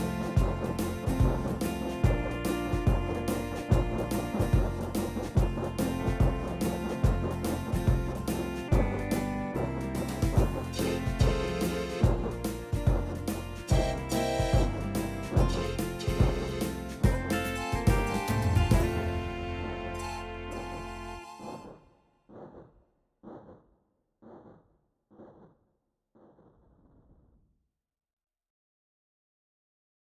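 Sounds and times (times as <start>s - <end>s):
boogie music: 0.0s - 21.8s.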